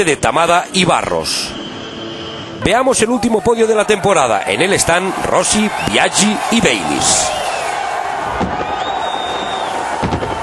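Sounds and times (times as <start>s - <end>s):
speech: 0.0s - 1.6s, 2.6s - 7.5s
crowd roar: 2.7s - 10.4s
thin whistling tone: 5.3s - 7.8s, 8.4s - 10.4s
fireworks and firecrackers popping: 8.3s - 10.4s.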